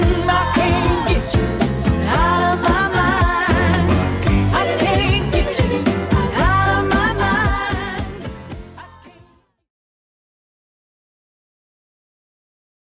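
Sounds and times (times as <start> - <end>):
1970s style drum loop: 0.6 - 8.4.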